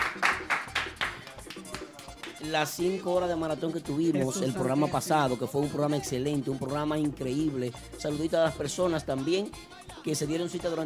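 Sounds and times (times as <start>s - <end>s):
studio applause: 0.0s - 2.7s
speech: 2.4s - 10.8s.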